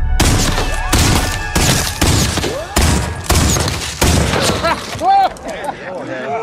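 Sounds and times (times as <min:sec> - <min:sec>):
Confederate sharpshooter gunfire: 0:00.2 - 0:04.8
laughter: 0:04.4 - 0:06.4.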